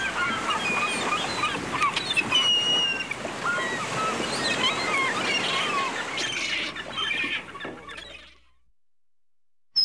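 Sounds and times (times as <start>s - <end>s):
gulls calling: 0.0s - 8.5s.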